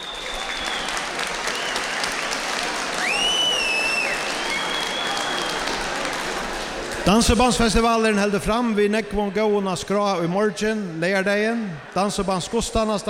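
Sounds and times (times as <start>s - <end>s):
shrill whistle: 0.0s - 2.3s, 3.0s - 5.6s
audience applause: 0.0s - 7.8s
speech: 7.1s - 13.0s.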